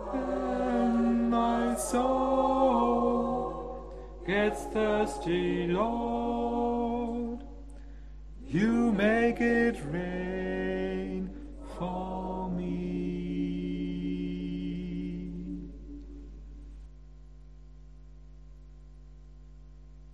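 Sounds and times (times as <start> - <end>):
tenor singing: 0.0 - 7.6, 8.4 - 16.6.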